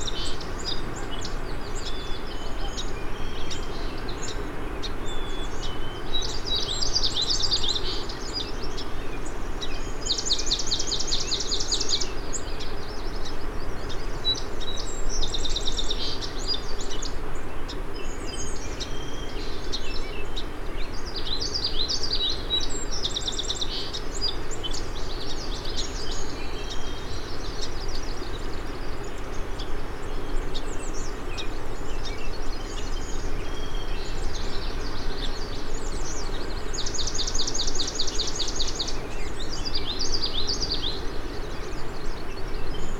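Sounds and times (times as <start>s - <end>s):
migrant songbirds calling: 0.0s - 42.9s.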